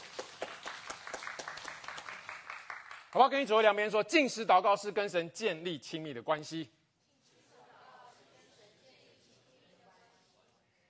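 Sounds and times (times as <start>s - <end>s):
church congregation clapping in rhythm: 0.0s - 4.1s
speech: 3.1s - 6.8s.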